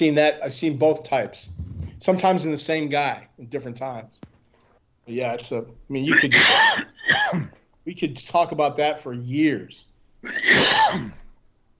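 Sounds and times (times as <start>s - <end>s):
speech: 0.0s - 4.3s, 5.1s - 11.2s
loud harsh cough: 6.1s - 7.6s, 10.2s - 11.2s.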